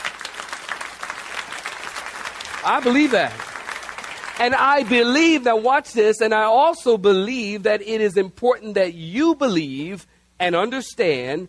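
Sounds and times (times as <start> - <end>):
audience clapping hands: 0.0 - 5.4
speech: 2.6 - 3.5, 4.4 - 11.4.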